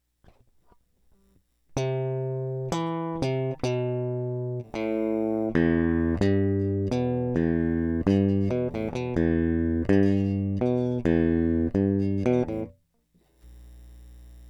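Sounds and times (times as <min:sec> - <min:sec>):
electric guitar: 0:01.8 - 0:12.7.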